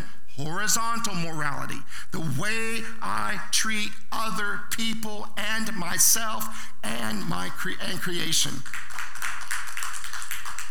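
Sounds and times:
speech: 0.4s - 8.9s
spontaneous audience applause: 8.6s - 10.6s.

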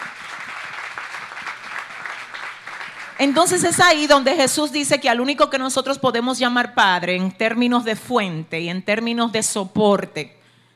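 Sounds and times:
audience applause: 0.0s - 3.6s
speech: 3.2s - 10.4s.

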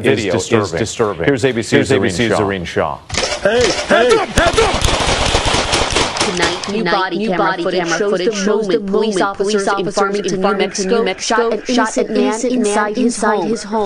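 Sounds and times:
speech: 0.0s - 4.9s, 6.3s - 13.8s
police gunfire in body camera footage: 3.1s - 6.8s
laughter: 3.2s - 5.1s, 6.3s - 12.4s.

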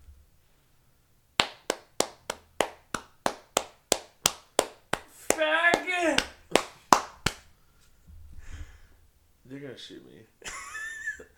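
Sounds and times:
buttocks cheeks clapping: 1.4s - 7.5s
speech: 9.8s - 10.6s.

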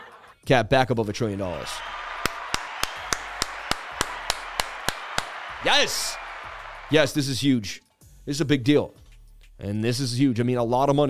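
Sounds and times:
speech: 0.5s - 2.0s, 5.6s - 6.2s, 6.9s - 9.0s, 9.6s - 11.0s
single pair of hands clapping in a steady rhythm: 1.6s - 7.2s.

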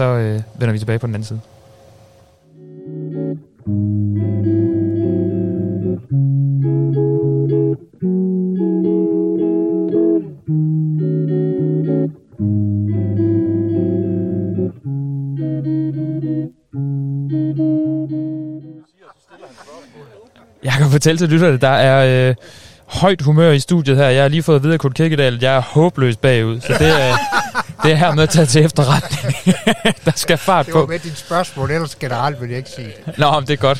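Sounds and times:
speech: 0.0s - 1.6s, 21.0s - 33.7s
short jazz interlude: 2.5s - 18.8s
laughter: 18.9s - 21.0s, 26.6s - 33.6s.

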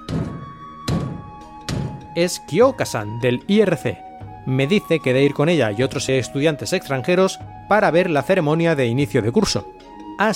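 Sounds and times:
knocking on a door: 0.0s - 2.1s
speech: 2.2s - 10.3s.

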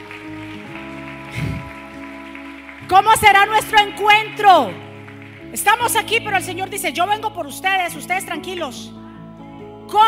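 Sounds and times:
church audience applauding loudly: 0.0s - 6.4s
speech: 2.9s - 4.9s, 5.5s - 9.0s.

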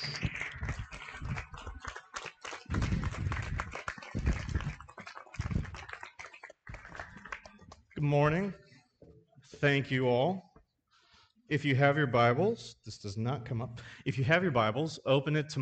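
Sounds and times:
audience applause: 0.0s - 8.0s
speech: 8.0s - 8.6s, 9.6s - 10.5s, 11.5s - 15.6s.

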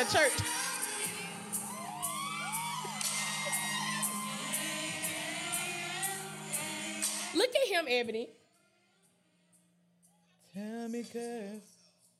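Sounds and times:
speech: 0.0s - 0.7s, 7.3s - 8.4s, 10.6s - 11.7s
crowd whooping and hollering: 1.0s - 6.1s.

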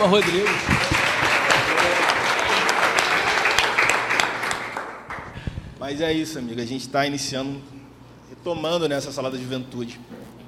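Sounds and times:
speech: 0.0s - 0.9s, 5.9s - 7.8s, 8.4s - 10.2s
applause: 0.0s - 5.5s.

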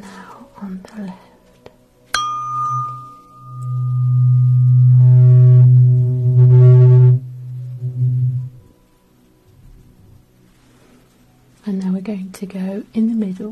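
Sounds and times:
speech: 0.6s - 1.3s
buzzing electronic hearing aid test tone: 3.0s - 8.7s.

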